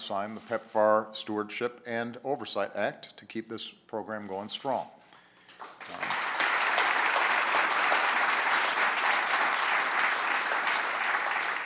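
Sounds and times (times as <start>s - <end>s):
speech: 0.1s - 5.0s
audience applause: 5.6s - 11.6s.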